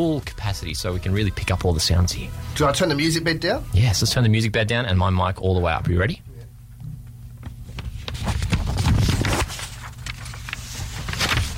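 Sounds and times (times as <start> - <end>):
speech: 0.0 - 6.2
pages turning: 7.5 - 11.5
paper crinkling: 7.5 - 11.5.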